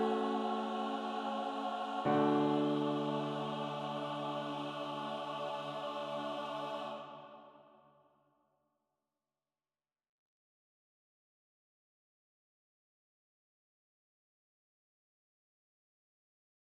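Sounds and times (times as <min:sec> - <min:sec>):
piano: 0:00.0 - 0:07.5
SATB choir singing ah: 0:00.0 - 0:07.8.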